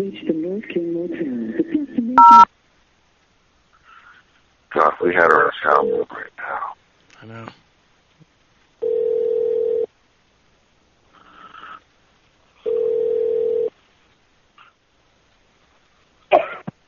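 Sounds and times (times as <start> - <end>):
speech: 0.0 - 1.5, 5.0 - 7.6
phone line tones after a call is hung up: 2.2 - 2.5, 8.8 - 9.9, 12.7 - 13.7.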